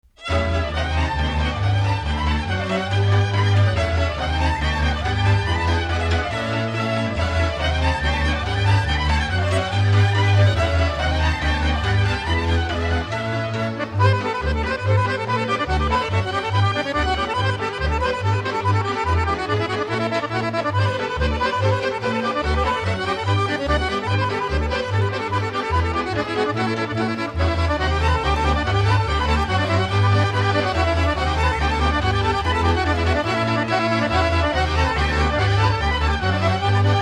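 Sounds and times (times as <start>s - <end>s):
accordion: 0.0s - 37.0s.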